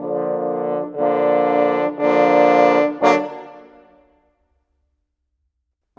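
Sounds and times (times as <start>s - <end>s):
orchestral rock pop horns: 0.0s - 4.2s.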